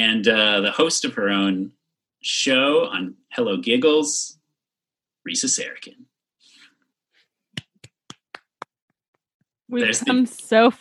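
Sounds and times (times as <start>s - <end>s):
speech: 0.0s - 4.4s, 5.2s - 6.1s, 9.7s - 10.7s
person clapping: 7.5s - 9.4s.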